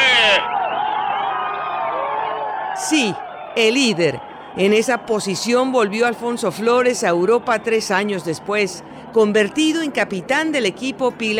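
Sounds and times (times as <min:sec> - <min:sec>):
crowd applauding the race leader: 0:00.0 - 0:08.6
speech: 0:02.8 - 0:11.3.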